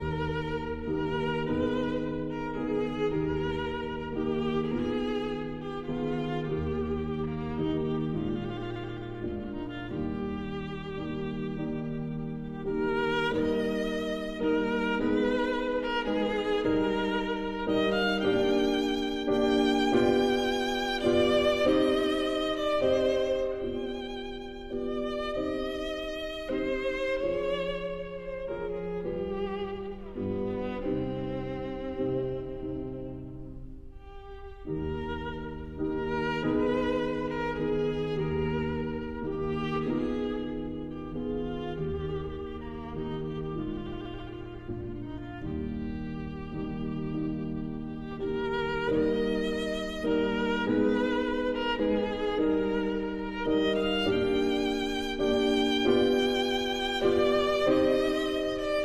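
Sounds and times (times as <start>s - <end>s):
violin and piano: 0.0s - 58.8s.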